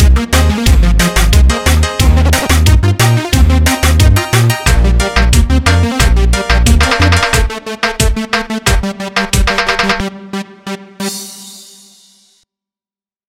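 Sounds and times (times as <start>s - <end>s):
techno beat: 0.1s - 10.1s.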